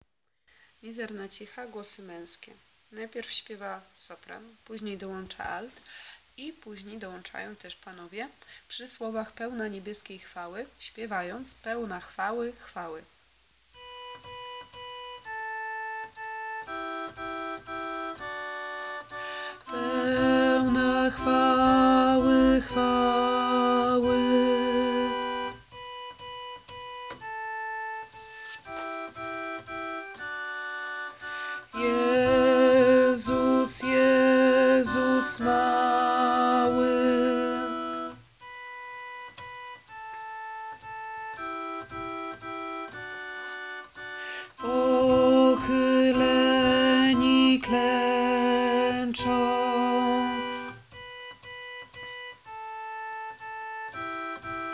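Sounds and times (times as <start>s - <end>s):
bass voice singing: 19.6s - 25.6s, 31.7s - 38.1s, 44.6s - 50.7s.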